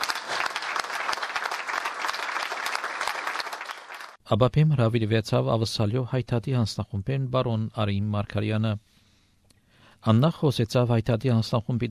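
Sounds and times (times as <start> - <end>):
audience applause honouring those who fought at the war front: 0.0 - 4.2
speech: 4.3 - 9.0, 10.0 - 11.8.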